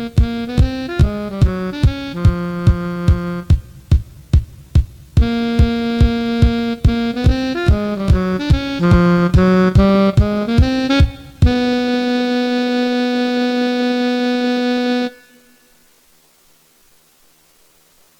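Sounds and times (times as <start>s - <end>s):
tenor saxophone playing jazz at 144 bpm: 0.0s - 3.9s, 5.2s - 15.8s.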